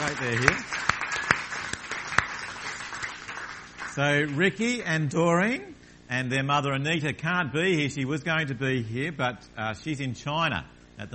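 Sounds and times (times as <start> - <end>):
scattered audience applause: 0.0 - 4.6
speech: 0.1 - 0.9, 4.0 - 11.1.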